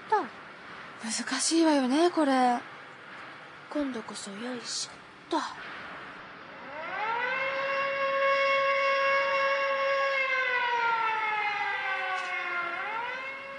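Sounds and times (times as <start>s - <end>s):
speech: 1.0s - 2.7s, 3.7s - 5.7s
air raid warning siren wailing: 6.4s - 13.5s.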